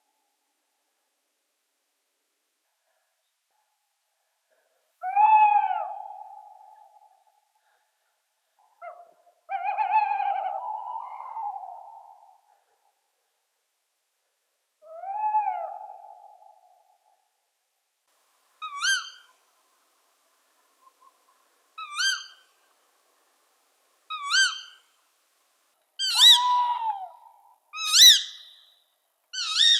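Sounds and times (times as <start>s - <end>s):
owl: 5.0s - 7.3s, 8.8s - 12.4s, 14.9s - 16.8s, 18.6s - 19.4s, 20.8s - 22.7s, 24.1s - 25.0s, 26.0s - 29.7s.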